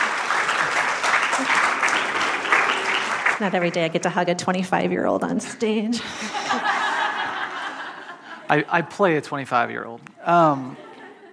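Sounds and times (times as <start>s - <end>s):
round of applause: 0.0s - 4.2s
speech: 3.4s - 6.6s, 8.5s - 10.8s
laughter: 6.0s - 9.2s, 10.3s - 11.3s.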